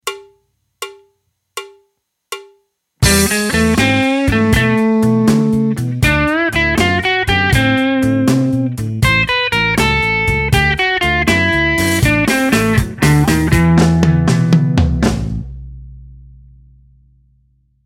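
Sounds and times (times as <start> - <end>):
blues music: 3.0 - 15.7.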